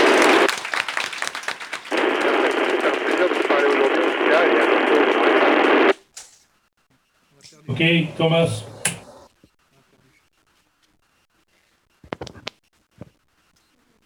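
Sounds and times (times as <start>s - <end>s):
radio static burst: 0.0s - 0.5s, 1.9s - 5.9s, 7.7s - 9.3s
group applauding over a radio link: 0.0s - 6.0s, 7.7s - 9.3s
speech: 7.8s - 8.7s.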